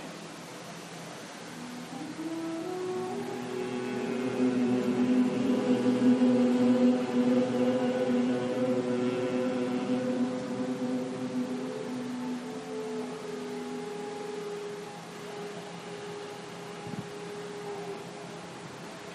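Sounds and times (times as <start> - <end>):
person humming Bhramari humming bee breath: 1.6 - 18.2.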